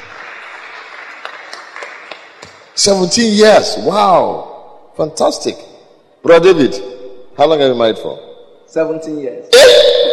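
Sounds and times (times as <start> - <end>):
audience clapping: 0.0 - 2.8
speech: 2.8 - 9.9.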